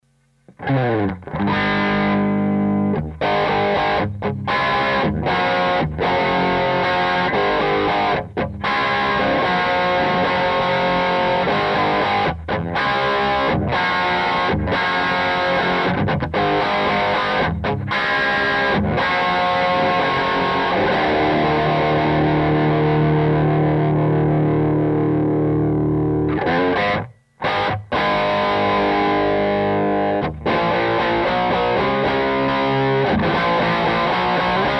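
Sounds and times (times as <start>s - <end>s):
Les Paul guitar with gain treble 12 mid 11 bass 10: 0.5s - 34.7s.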